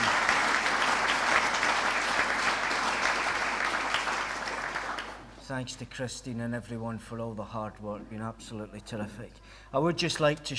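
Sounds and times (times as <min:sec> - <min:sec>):
audience applause: 0:00.0 - 0:05.3
speech: 0:05.5 - 0:10.5.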